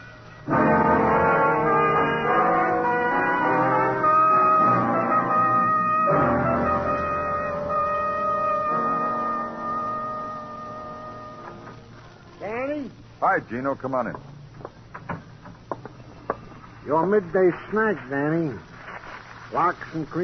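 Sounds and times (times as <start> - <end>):
ambulance siren arriving: 0.5 - 11.8
speech: 13.3 - 14.3, 16.9 - 18.7, 19.5 - 20.2.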